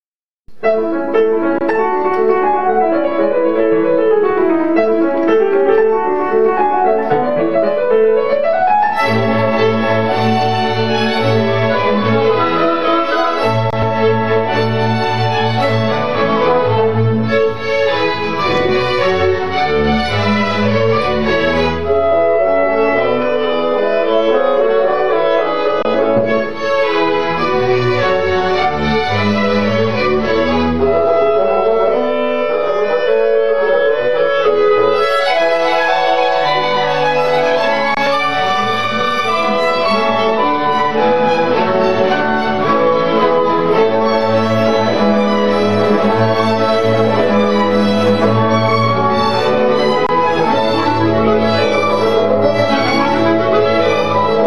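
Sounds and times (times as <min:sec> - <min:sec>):
piano concerto third movement: 0:00.5 - 0:54.4.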